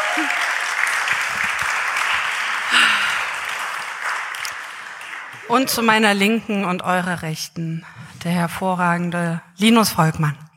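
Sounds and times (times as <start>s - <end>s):
faint voices and whoops: 0.0s - 0.7s
live crowd clapping: 0.0s - 6.5s
speech: 5.5s - 10.4s.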